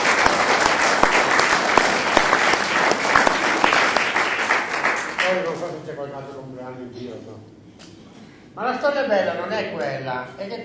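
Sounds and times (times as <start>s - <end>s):
audience applause: 0.0s - 5.5s
speech: 5.9s - 7.6s, 8.6s - 10.6s.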